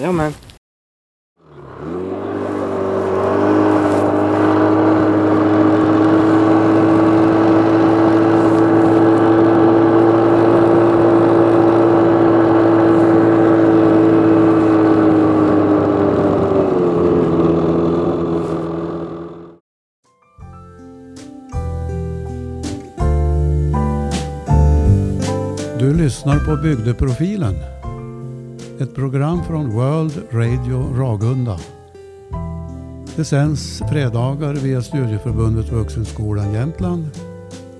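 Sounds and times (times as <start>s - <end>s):
speech: 0.0s - 0.4s, 26.5s - 27.8s, 28.8s - 31.8s, 33.2s - 37.2s
vehicle engine droning while driving back: 1.4s - 19.6s
music: 20.0s - 37.7s.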